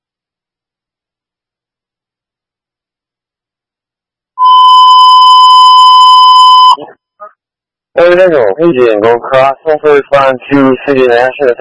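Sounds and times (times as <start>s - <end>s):
emergency dispatch alert tones: 4.4s - 6.9s
speech: 8.1s - 11.5s.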